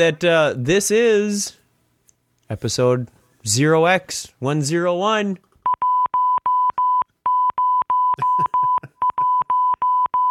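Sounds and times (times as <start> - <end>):
speech: 0.0 - 1.6, 2.5 - 5.5
morse code beeps: 5.7 - 10.3.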